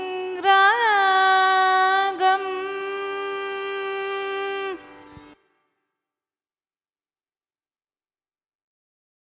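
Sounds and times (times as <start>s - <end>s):
Carnatic music: 0.0s - 5.6s.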